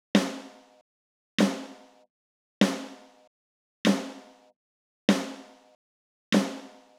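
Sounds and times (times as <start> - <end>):
snare drum with phase transient smearing: 0.2 - 0.6, 1.4 - 1.9, 2.6 - 3.1, 3.9 - 4.3, 5.1 - 5.6, 6.4 - 6.9.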